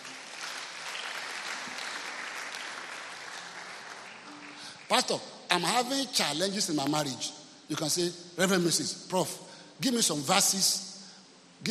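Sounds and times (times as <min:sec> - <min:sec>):
audience clapping hands: 0:00.0 - 0:05.2
speech: 0:04.9 - 0:10.8.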